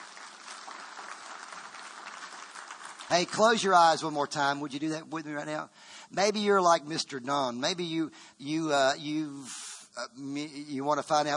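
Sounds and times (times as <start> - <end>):
congregation clapping at a church service: 0.0 - 4.4
speech: 3.1 - 11.3.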